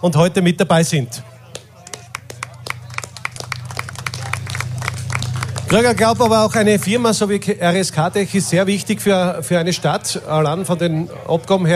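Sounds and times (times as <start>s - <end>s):
speech: 0.0s - 1.4s, 5.7s - 11.7s
audience applause: 1.5s - 7.2s
low constant hum: 1.6s - 10.6s.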